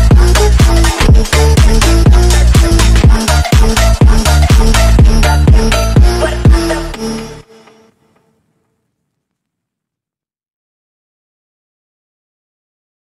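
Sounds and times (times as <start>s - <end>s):
phonk music: 0.0s - 8.2s.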